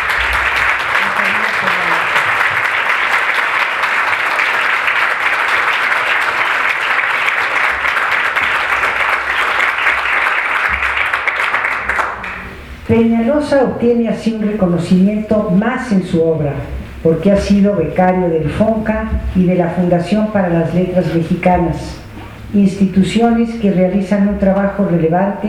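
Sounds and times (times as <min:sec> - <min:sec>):
audience applause: 0:00.0 - 0:12.4
speech: 0:12.9 - 0:25.4.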